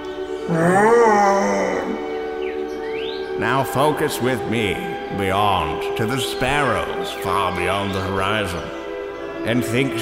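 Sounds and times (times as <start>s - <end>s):
elephant mating call: 0.3s - 3.3s
speech: 0.5s - 1.0s, 3.4s - 8.8s, 9.4s - 10.0s.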